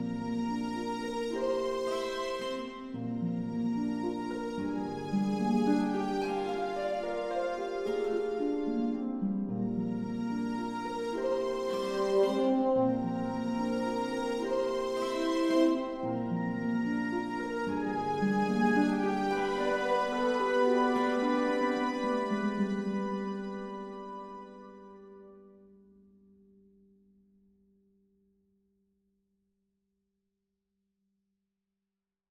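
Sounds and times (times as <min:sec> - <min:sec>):
cinematic music: 0:00.1 - 0:25.2.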